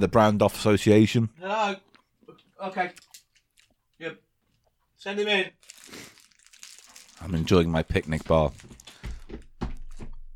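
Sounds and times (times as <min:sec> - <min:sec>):
speech: 0:00.0 - 0:01.9, 0:02.6 - 0:03.1, 0:04.0 - 0:04.2, 0:05.0 - 0:06.1, 0:07.2 - 0:09.4
footsteps acted out with feet: 0:08.5 - 0:10.3.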